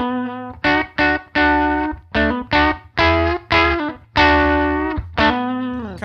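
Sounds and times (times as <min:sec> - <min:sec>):
electric guitar through a Tube Screamer overdrive strumming chords: 0:00.0 - 0:06.0.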